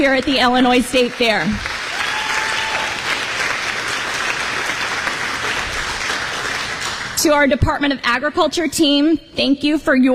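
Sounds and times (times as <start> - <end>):
speech: 0.0 - 1.8, 7.2 - 10.1
audience applause: 0.0 - 7.2.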